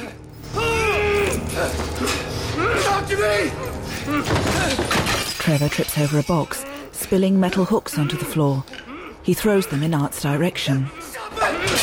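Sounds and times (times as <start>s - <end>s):
metal chain creaking and rattling as two men struggle against it: 0.0s - 8.8s
speech: 3.1s - 11.0s.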